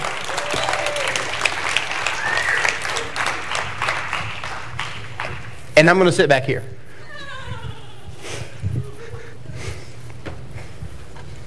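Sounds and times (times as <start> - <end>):
audience applause: 0.0 - 5.6
speech: 5.8 - 6.8.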